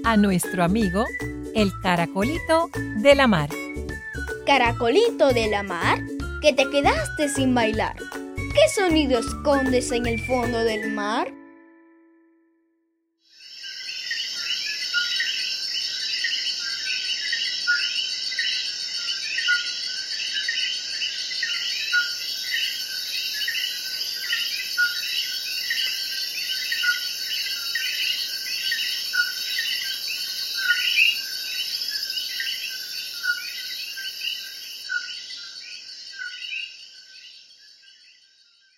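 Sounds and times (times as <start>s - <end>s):
speech: 0.0s - 3.6s, 4.5s - 11.4s
coquí frog calling: 13.4s - 37.3s.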